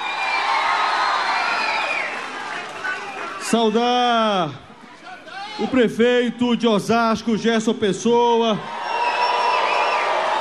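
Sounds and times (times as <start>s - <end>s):
audience applause: 0.0s - 3.6s, 8.8s - 10.4s
audience cheering: 0.0s - 4.2s, 8.6s - 10.4s
speech: 3.5s - 4.7s, 5.6s - 8.8s.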